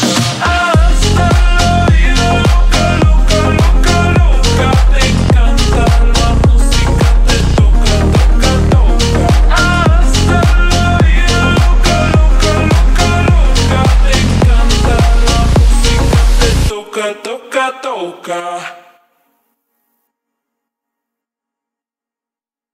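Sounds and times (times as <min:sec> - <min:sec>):
slowed techno with reverb: 0:00.0 - 0:16.8.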